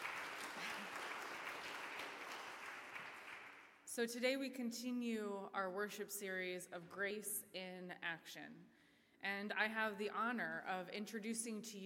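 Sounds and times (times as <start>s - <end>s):
audience applause: 0.0s - 3.7s
speech: 3.9s - 11.8s.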